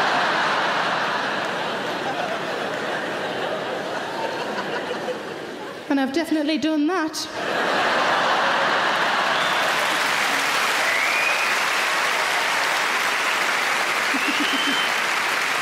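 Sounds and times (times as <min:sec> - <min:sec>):
audience clapping at a stand-up comedy show: 0:00.0 - 0:03.8, 0:08.0 - 0:15.6
laughter: 0:00.0 - 0:05.8, 0:07.4 - 0:11.0, 0:12.1 - 0:15.6
speech: 0:05.9 - 0:07.9.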